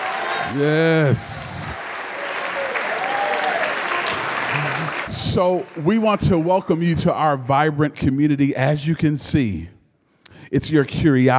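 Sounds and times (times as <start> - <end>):
new students clapping at a welcome address: 0.0 - 7.3
speech: 0.5 - 1.6, 5.3 - 9.8, 10.5 - 11.3.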